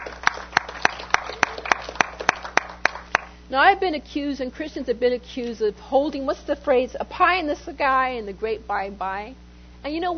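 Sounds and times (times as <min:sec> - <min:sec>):
audience clapping in rhythm: 0:00.0 - 0:03.4
speech: 0:03.5 - 0:10.1.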